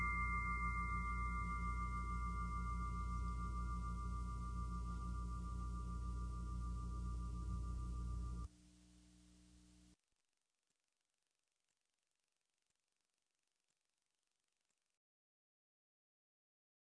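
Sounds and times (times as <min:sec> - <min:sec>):
Himalayan echo chime: 0:00.0 - 0:08.5.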